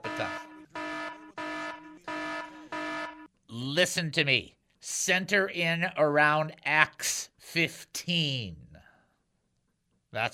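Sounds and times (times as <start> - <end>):
horn sound effect: 0.0 - 3.3
speech: 0.2 - 0.5, 3.8 - 8.7, 10.1 - 10.3.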